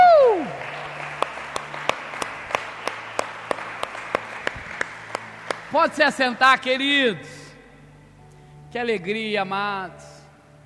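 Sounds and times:
audience applauding: 0:00.0 - 0:06.3
speech: 0:05.8 - 0:07.4, 0:08.7 - 0:10.1.

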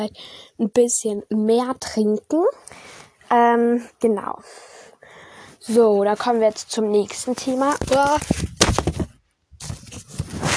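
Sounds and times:
speech: 0:00.0 - 0:04.8, 0:05.6 - 0:08.5
mobile phone dropped onto the floor: 0:08.5 - 0:09.1.

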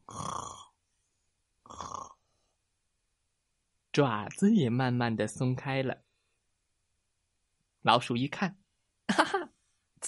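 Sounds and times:
person imitating loud cat snoring: 0:00.0 - 0:00.7, 0:01.7 - 0:02.2
speech: 0:04.0 - 0:06.0, 0:07.8 - 0:09.4.

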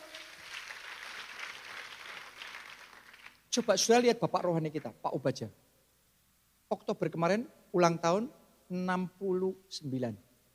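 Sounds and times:
audience applause: 0:00.0 - 0:03.4
speech: 0:03.6 - 0:05.6, 0:06.7 - 0:10.3.

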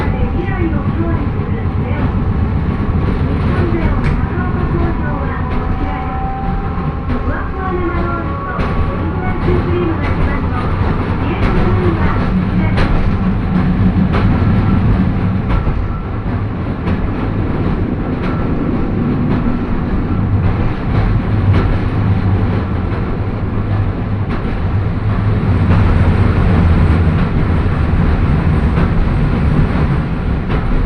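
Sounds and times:
whining motor tones: 0:00.0 - 0:22.2
Manyo Line train with nose-suspended traction motors growling: 0:00.0 - 0:30.8.

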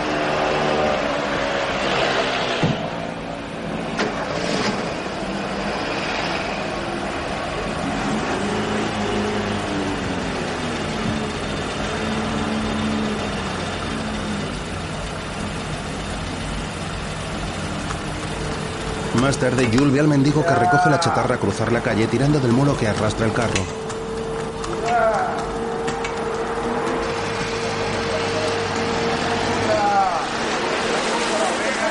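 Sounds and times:
car engine rumbling as men leave outside a building: 0:00.0 - 0:31.9
speech: 0:19.3 - 0:23.8.

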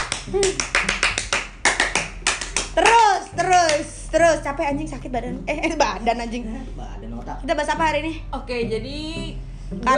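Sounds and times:
rhythmic scout-style hand clapping pattern: 0:00.0 - 0:04.0
speech: 0:00.3 - 0:01.0, 0:02.8 - 0:09.9.

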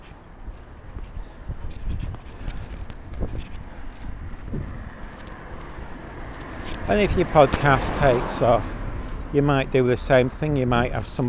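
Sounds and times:
footsteps of someone walking past: 0:00.0 - 0:11.2
speech: 0:06.9 - 0:11.2.

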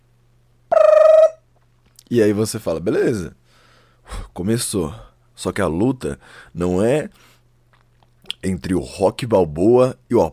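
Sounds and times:
alarm ringing: 0:00.7 - 0:01.4
speech: 0:02.1 - 0:03.4, 0:04.4 - 0:07.3, 0:08.4 - 0:10.3.

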